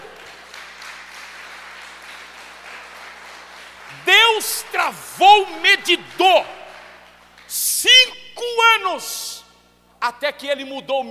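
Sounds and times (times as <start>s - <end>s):
audience applause: 0.0s - 7.5s
speech: 4.4s - 6.6s, 7.5s - 9.3s, 10.0s - 11.0s.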